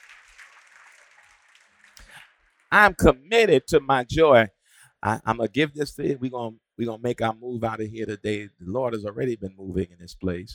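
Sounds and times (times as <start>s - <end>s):
audience clapping hands in praise: 0.0s - 3.1s
speech: 2.7s - 10.5s.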